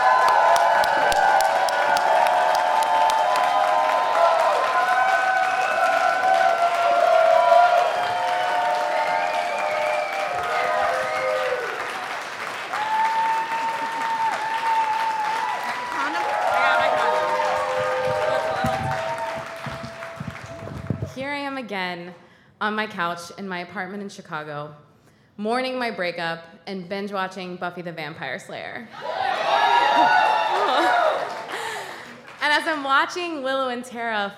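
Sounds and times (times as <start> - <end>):
crowd cheering and whooping: 0.0 - 21.2, 28.9 - 31.9
standing ovation applause: 0.0 - 21.2, 29.0 - 32.8
speech: 22.7 - 29.2, 32.6 - 34.3.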